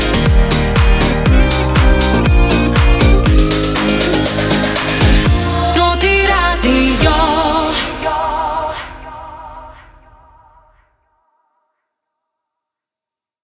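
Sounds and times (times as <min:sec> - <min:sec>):
radio day show opener: 0:00.0 - 0:10.4.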